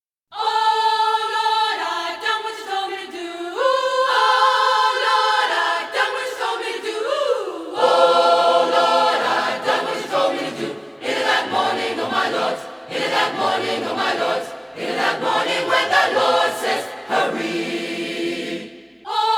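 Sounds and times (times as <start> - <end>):
gospel choir singing: 0.4 - 19.3.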